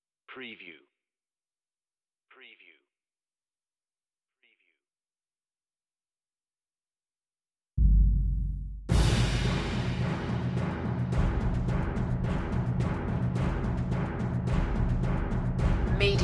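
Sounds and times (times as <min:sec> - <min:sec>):
percussion mix: 0:07.8 - 0:16.2.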